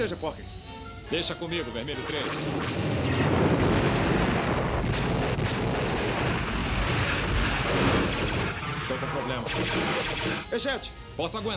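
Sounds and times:
speech: 0.0s - 3.8s, 8.8s - 11.5s
heavy fire from a deflection tower in a Star Wars space battle: 2.0s - 10.6s.

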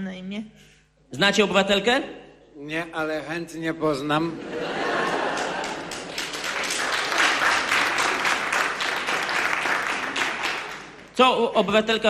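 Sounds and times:
speech: 0.0s - 4.8s, 11.2s - 12.0s
laughter: 4.2s - 6.9s
audience clapping: 4.8s - 11.2s.

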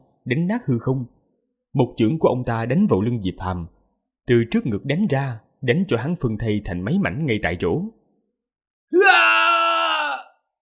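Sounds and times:
speech: 0.3s - 8.0s, 8.9s - 9.5s
man screaming in pain: 8.9s - 10.4s.

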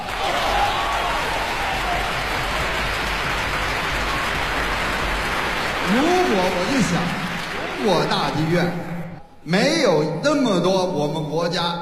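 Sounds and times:
applause for young classical musicians at the National Centre for the Performing Arts: 0.0s - 8.8s
speech: 5.9s - 7.2s, 7.8s - 11.8s.

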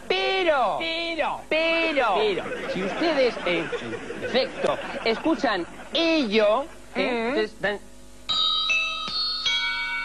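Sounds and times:
speech: 0.5s - 7.9s
laughter: 1.9s - 7.3s
bell of the church of Santa Brígida striking four o'clock: 8.3s - 10.0s.

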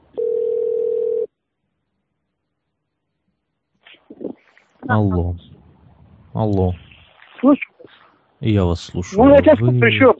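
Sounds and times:
telephone dial tone after the other party hangs up: 0.2s - 1.3s
speech: 4.9s - 5.5s, 6.4s - 6.8s, 7.4s - 7.7s, 8.4s - 10.1s.

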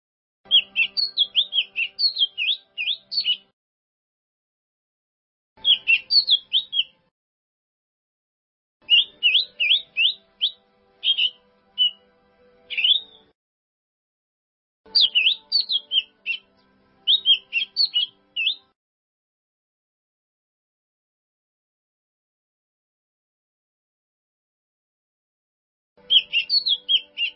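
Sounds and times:
bird song: 0.5s - 3.5s, 5.6s - 7.1s, 8.8s - 13.4s, 14.9s - 18.8s, 26.0s - 27.3s.

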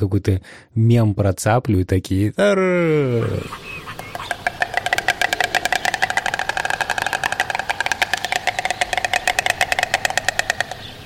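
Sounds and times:
speech: 0.0s - 3.8s
two white storks on a nest clattering bills in courtship duet: 3.4s - 11.0s.

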